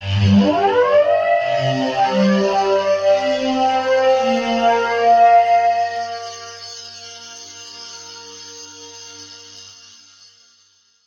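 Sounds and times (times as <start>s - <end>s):
synth pad: 0.0s - 6.8s.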